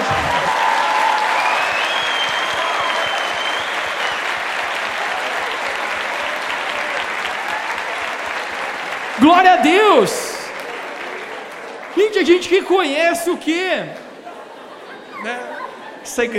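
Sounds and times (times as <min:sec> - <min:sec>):
faint cheering: 0:00.0 - 0:12.6
audience applause: 0:00.0 - 0:15.0
whistle-like tones: 0:01.4 - 0:04.2
speech: 0:09.2 - 0:10.3, 0:12.1 - 0:14.0, 0:15.2 - 0:15.5, 0:16.1 - 0:16.3
laughter: 0:12.0 - 0:16.3.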